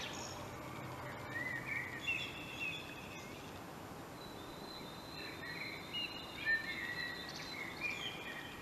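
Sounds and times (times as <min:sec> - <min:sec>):
common blackbird song: 0:00.0 - 0:08.6.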